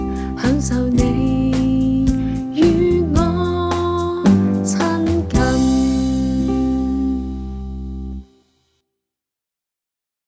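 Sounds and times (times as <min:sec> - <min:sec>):
person singing: 0:00.0 - 0:07.8.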